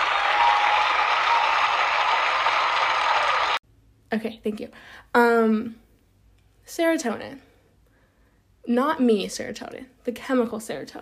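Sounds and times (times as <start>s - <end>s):
round of applause sound effect: 0.0s - 3.6s
speech: 4.1s - 5.8s, 6.7s - 7.5s, 8.6s - 11.0s.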